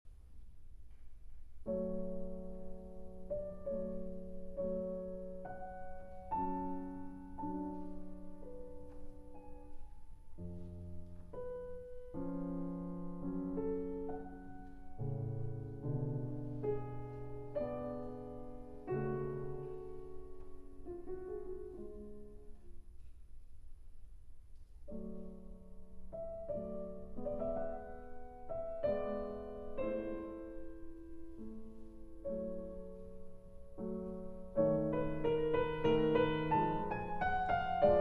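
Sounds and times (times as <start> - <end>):
live piano concerto adagio in A major: 0.3 - 37.9.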